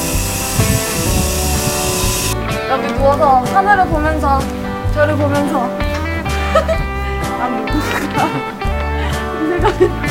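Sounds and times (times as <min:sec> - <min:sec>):
construction work noise at a newly built building: 0:00.0 - 0:02.4
power tools: 0:00.0 - 0:02.4
sawing: 0:00.0 - 0:02.4
speech: 0:02.7 - 0:05.8, 0:07.4 - 0:08.5, 0:09.6 - 0:10.0
laughter: 0:06.3 - 0:07.1, 0:07.7 - 0:10.0.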